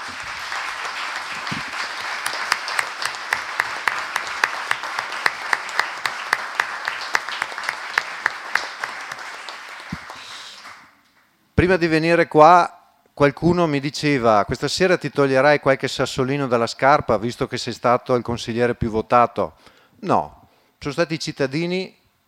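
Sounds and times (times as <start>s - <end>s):
audience applause: 0.0s - 10.9s
speech: 11.6s - 22.0s.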